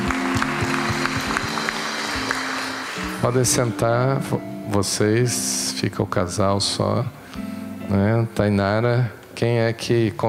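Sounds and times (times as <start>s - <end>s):
audience applause: 0.0s - 3.8s
speech: 3.2s - 10.2s.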